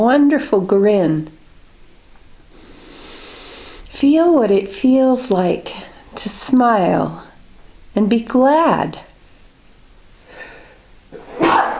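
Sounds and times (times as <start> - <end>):
speech: 0.0 - 1.4, 4.0 - 7.3, 8.0 - 9.1
soft intake of breath: 2.5 - 4.0, 10.2 - 10.9
sneeze: 11.2 - 11.7.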